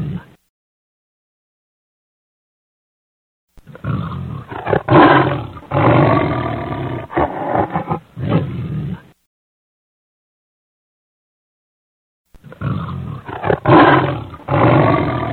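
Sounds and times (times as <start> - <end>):
lion roaring: 0.0 - 0.4, 3.6 - 9.1, 12.4 - 15.3.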